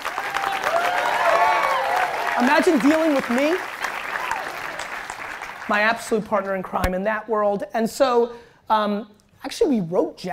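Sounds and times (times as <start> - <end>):
crowd applauding: 0.0 - 6.3
speech: 2.4 - 3.7, 5.7 - 10.3.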